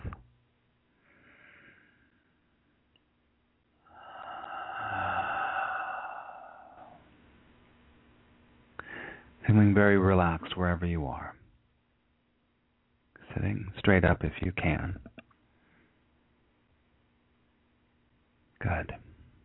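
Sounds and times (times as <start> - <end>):
slow breathing in through the nose and out through the mouth: 0.9 - 2.5, 3.8 - 7.2, 8.8 - 9.4, 15.5 - 16.1
speech: 9.5 - 11.4, 13.4 - 15.2.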